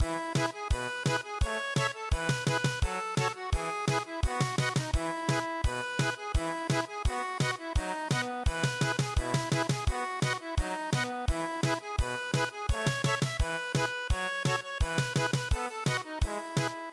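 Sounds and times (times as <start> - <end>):
traditional German polka music: 0.0 - 16.9.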